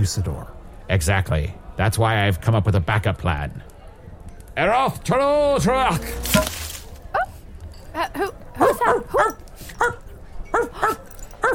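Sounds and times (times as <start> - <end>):
speech: 0.0 - 3.7, 4.6 - 6.6, 8.2 - 10.0
dog yipping barks: 8.6 - 11.5.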